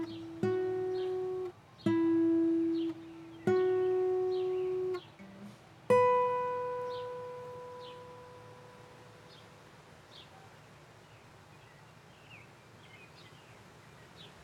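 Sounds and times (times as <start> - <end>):
guitar playing: 0.0 - 9.3.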